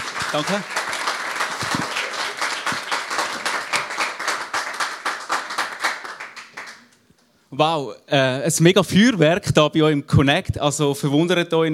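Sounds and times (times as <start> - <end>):
crowd applauding: 0.0 - 7.0
speech: 0.3 - 0.8, 7.6 - 11.7.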